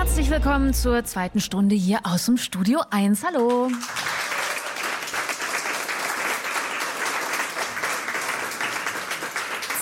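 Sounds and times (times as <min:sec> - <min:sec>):
speech: 0:00.2 - 0:04.0
audience applause: 0:03.4 - 0:09.8.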